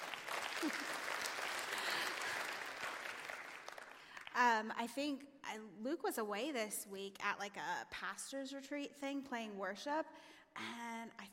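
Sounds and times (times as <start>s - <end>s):
audience applause: 0.0s - 4.3s
speech: 0.6s - 1.0s, 4.4s - 11.3s.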